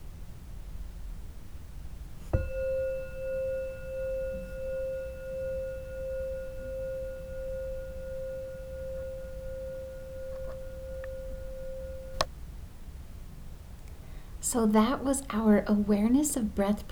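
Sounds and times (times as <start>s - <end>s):
meditation bell ringing: 2.2s - 12.4s
speech: 14.5s - 16.9s.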